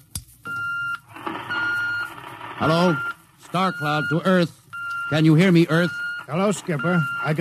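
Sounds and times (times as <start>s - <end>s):
intercom call beep: 0.5s - 7.3s
hissy noise: 1.1s - 4.5s, 5.2s - 7.3s
speech: 2.6s - 7.3s.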